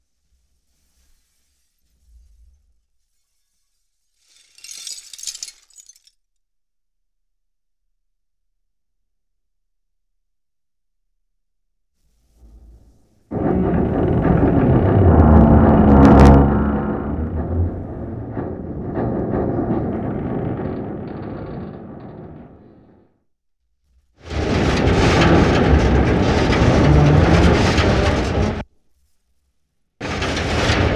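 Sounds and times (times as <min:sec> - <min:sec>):
explosion: 0:13.3 - 0:23.0, 0:24.3 - 0:28.6, 0:30.0 - 0:30.9.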